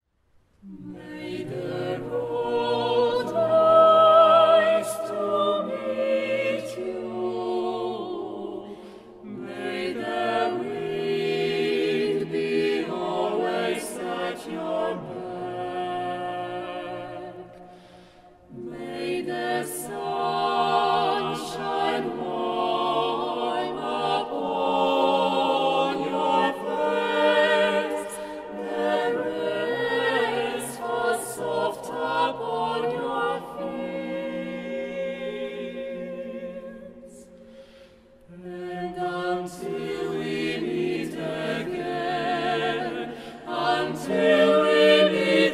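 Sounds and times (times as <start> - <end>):
vocal ensemble singing: 0.6 - 45.5.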